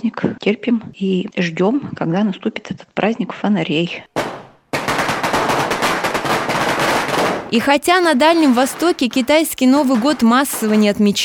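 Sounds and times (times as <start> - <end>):
speech: 0.0 - 4.2, 7.5 - 11.2
firecrackers exploding: 4.2 - 11.2.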